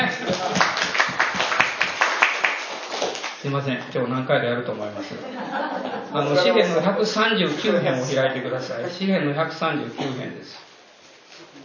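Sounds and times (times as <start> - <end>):
laughter: 0.0 - 0.9, 5.0 - 9.2
audience clapping: 0.0 - 3.4
speech: 3.5 - 10.7.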